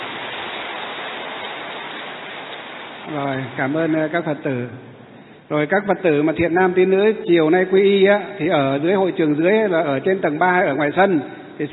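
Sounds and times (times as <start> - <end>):
audience applause: 0.0 - 4.0
speech: 3.1 - 4.9, 5.5 - 11.7.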